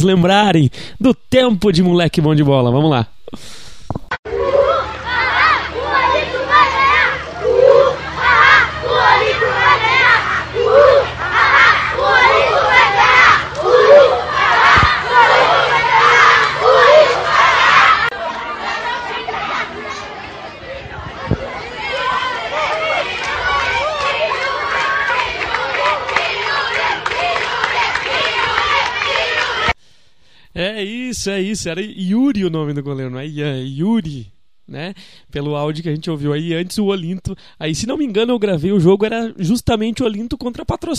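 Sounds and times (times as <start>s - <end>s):
speech: 0.0s - 3.6s, 30.8s - 40.9s
rival football supporters cheering in stands: 4.3s - 29.8s.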